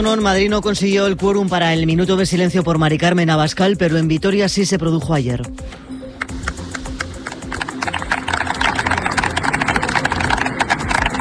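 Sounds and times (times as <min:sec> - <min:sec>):
speech: 0:00.0 - 0:05.8
crowd applauding at a street gathering: 0:06.6 - 0:11.1.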